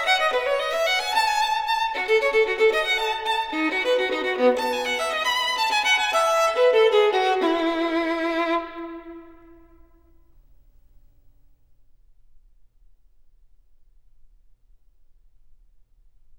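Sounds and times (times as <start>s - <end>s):
solo violin gigue in E major: 0.0s - 10.2s.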